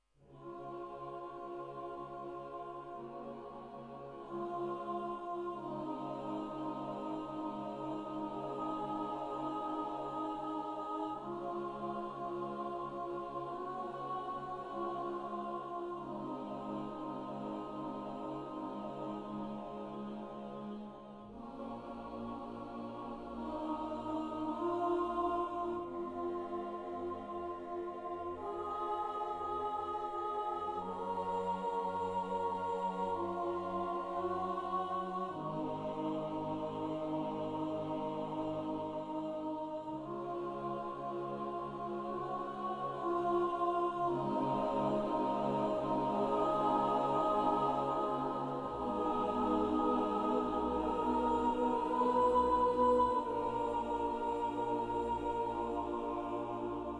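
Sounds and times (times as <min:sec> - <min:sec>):
choir singing: 0:00.0 - 0:56.9.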